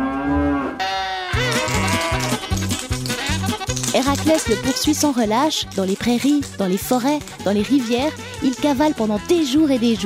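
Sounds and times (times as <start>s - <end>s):
bull bellowing: 0.0s - 3.6s
speech: 4.0s - 10.0s.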